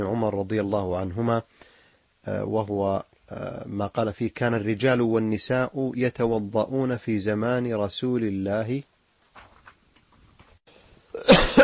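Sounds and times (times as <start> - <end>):
speech: 0.0 - 8.9, 11.2 - 11.6
person coughing: 11.2 - 11.6.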